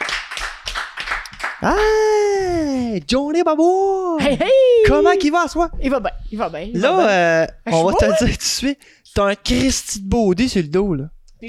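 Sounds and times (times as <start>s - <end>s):
crowd clapping during a lively show: 0.0s - 2.0s
speech: 1.6s - 2.1s, 2.8s - 11.4s.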